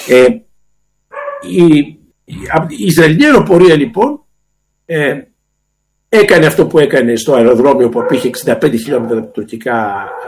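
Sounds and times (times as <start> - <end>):
speech: 0.0 - 0.4, 1.4 - 4.2, 4.9 - 5.3, 6.1 - 10.2
dogs barking at home: 1.1 - 1.6, 7.8 - 10.2.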